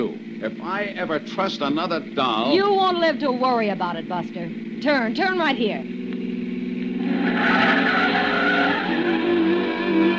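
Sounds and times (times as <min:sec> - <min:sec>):
old pre-war car engine rumbling: 0:00.0 - 0:10.1
speech: 0:00.4 - 0:06.0
old pre-war car tires squealing: 0:06.8 - 0:10.1.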